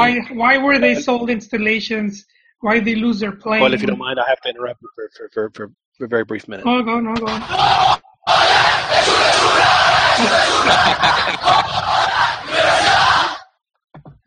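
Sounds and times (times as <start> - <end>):
laughter: 0.0 - 1.2, 3.5 - 7.7, 8.3 - 13.3
speech: 0.1 - 13.0
big stadium crowd cheering a goal: 3.6 - 4.7, 7.2 - 13.4.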